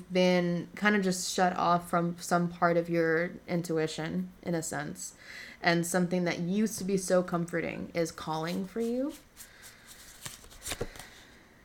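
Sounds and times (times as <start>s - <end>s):
speech: 0.1s - 9.5s, 10.7s - 11.0s
oracle cards handled from a deck: 8.5s - 11.2s.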